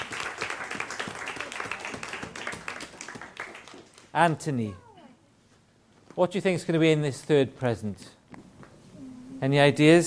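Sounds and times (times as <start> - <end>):
audience applause: 0.0 - 4.1
speech: 4.2 - 4.8, 6.2 - 8.2, 9.4 - 10.0.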